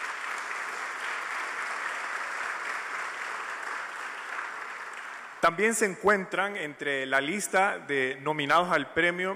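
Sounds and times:
crowd applauding: 0.0 - 5.8
speech: 5.4 - 9.3.

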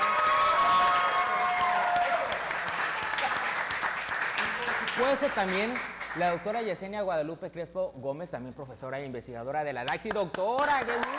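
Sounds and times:
audience applause: 0.0 - 6.4, 10.6 - 11.1
speech: 5.0 - 11.1.

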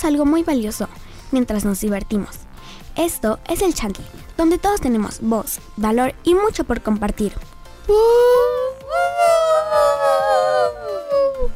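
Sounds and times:
speech: 0.0 - 9.9
voices imitating a siren: 8.5 - 11.5.

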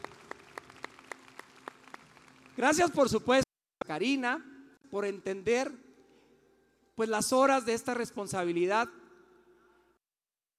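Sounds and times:
audience applause: 0.0 - 2.6
speech: 2.6 - 5.8, 7.0 - 9.0.

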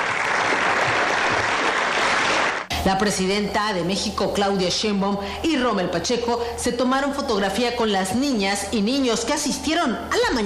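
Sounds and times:
audience applause for champions: 0.0 - 2.7
speech: 2.8 - 10.4.

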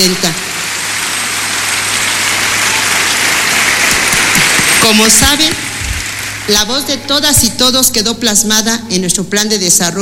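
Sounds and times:
large crowd applauding: 0.0 - 6.7
speech: 5.0 - 5.6, 6.5 - 9.9.

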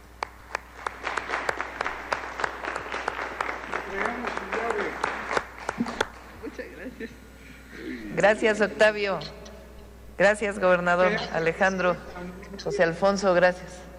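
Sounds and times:
audience applause: 0.0 - 6.5
speech: 3.9 - 4.5, 8.2 - 9.4, 10.2 - 13.8.

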